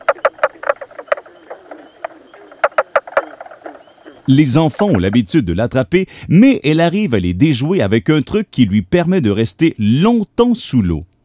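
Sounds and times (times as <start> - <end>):
mink frog call: 0.0 - 5.2
speech: 4.3 - 11.1.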